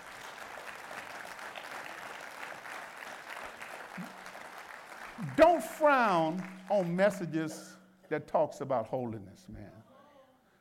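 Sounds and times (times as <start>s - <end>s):
audience clapping hands in praise: 0.0s - 7.8s
speech: 5.2s - 9.8s.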